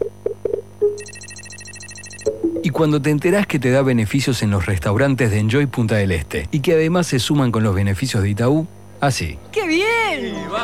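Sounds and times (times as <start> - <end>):
phone app jingle when downloading: 1.0 - 2.8
speech: 2.6 - 10.6.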